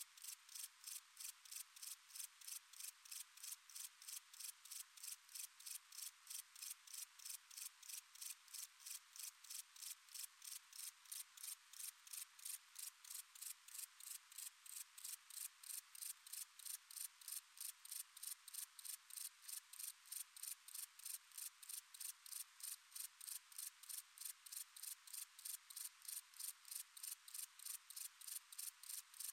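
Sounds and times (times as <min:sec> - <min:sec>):
heath grasshopper chirping: 0:00.2 - 0:29.3.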